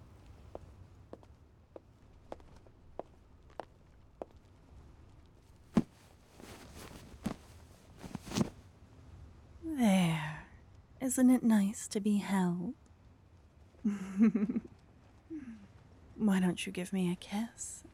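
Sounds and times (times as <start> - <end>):
footsteps of someone walking back over: 5.7 - 8.6
speech: 11.1 - 12.8, 13.8 - 14.7, 16.2 - 17.8.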